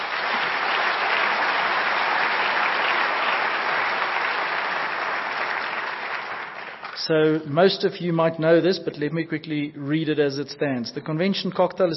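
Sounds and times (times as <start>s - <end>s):
audience applause: 0.0s - 7.1s
speech: 7.0s - 11.9s.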